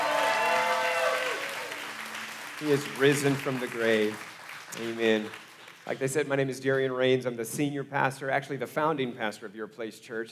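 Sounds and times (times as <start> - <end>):
audience hand clapping: 0.0 - 6.5
speech: 2.6 - 10.3.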